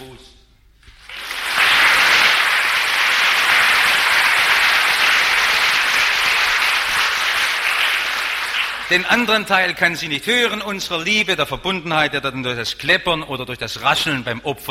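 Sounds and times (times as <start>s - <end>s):
audience applauding in a church hall: 0.8s - 9.5s
speech: 8.9s - 14.7s.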